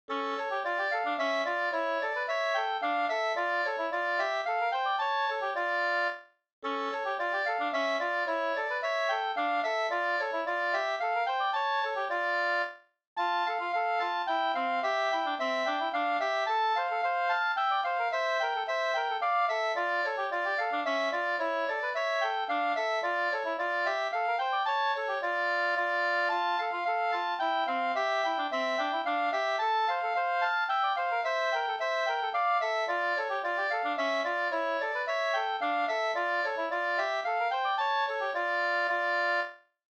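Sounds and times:
two-part slangpolska: 0.1 - 39.6.

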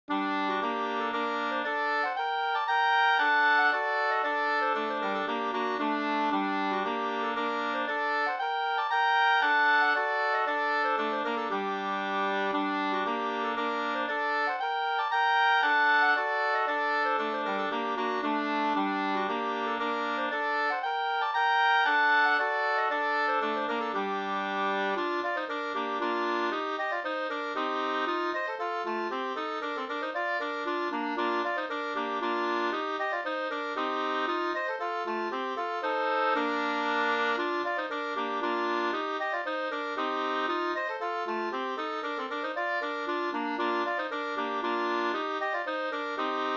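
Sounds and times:
two-part polska folk dance tune: 0.1 - 46.5.

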